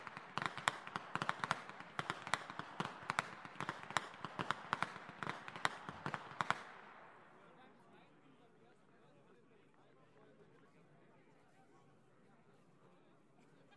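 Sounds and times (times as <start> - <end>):
whip cracking in Flachgau: 0.0 - 6.8.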